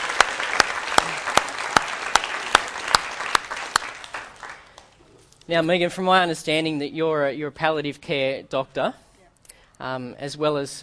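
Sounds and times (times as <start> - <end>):
sparse applause from a church audience welcoming a guest: 0.0 - 4.9
speech: 5.5 - 9.0, 9.8 - 10.8.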